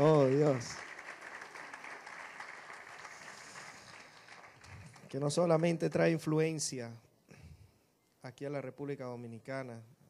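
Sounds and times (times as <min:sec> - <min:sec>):
speech: 0:00.0 - 0:00.8, 0:05.1 - 0:07.1, 0:08.2 - 0:10.0
audience applause: 0:00.0 - 0:05.2.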